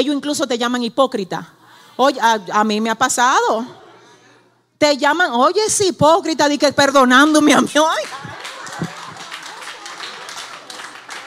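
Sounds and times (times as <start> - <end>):
speech: 0.0 - 3.8, 4.8 - 8.3
audience clapping: 8.0 - 11.2
laughter: 8.0 - 11.2.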